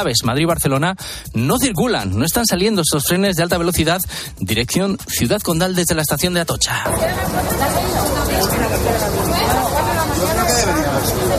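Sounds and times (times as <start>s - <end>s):
speech: 0.0s - 9.7s
crowd murmur of queuing train passengers: 6.8s - 11.3s.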